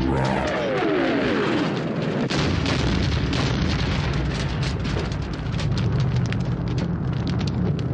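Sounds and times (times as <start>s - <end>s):
explosion sound effect: 0.1s - 7.9s.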